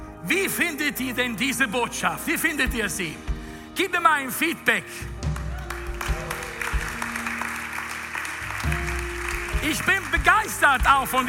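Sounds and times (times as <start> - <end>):
speech: 0.2 - 5.2, 9.6 - 11.2
audience applause: 5.2 - 11.2.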